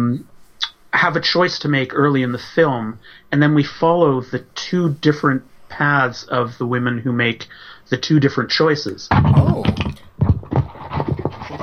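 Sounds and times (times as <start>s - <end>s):
speech: 0.0s - 0.3s, 0.9s - 10.1s
microphone knocked over by hand: 9.1s - 11.3s.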